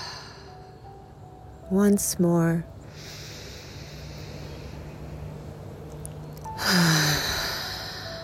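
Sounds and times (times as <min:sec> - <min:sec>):
speech: 0:01.7 - 0:03.1
deep breath in through the nose and long breathy exhale: 0:02.9 - 0:05.4, 0:06.5 - 0:08.2.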